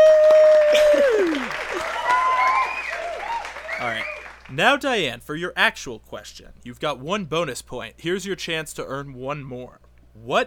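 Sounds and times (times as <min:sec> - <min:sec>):
audience applause: 0:00.0 - 0:04.6
speech: 0:04.6 - 0:10.4.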